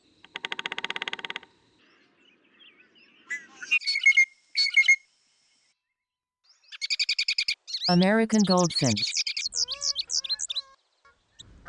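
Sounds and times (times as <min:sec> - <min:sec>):
bellied woodpecker calls: 0:00.2 - 0:01.6, 0:06.7 - 0:10.7
speech: 0:07.9 - 0:09.1.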